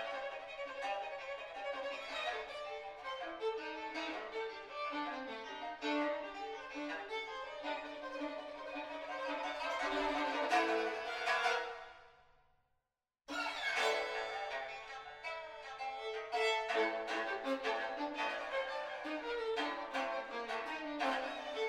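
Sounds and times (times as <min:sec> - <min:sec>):
pipa: 0:00.0 - 0:11.9, 0:13.3 - 0:21.6
violin: 0:00.0 - 0:12.1, 0:13.3 - 0:21.6.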